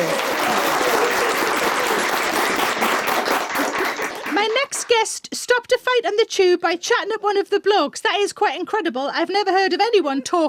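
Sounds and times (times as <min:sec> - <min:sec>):
cheers: 0:00.0 - 0:04.5
television studio audience applause welcoming a comedian: 0:00.0 - 0:05.0
speech: 0:04.9 - 0:10.4.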